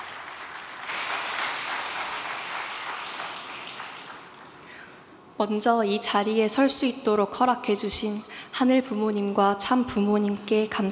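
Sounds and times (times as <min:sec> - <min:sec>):
audience applause: 0:00.0 - 0:04.6
speech: 0:05.4 - 0:10.9.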